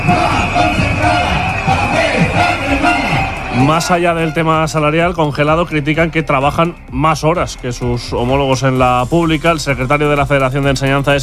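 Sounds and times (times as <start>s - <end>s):
protest crowd chanting slogan: 0.0s - 4.3s
speech: 3.6s - 11.2s.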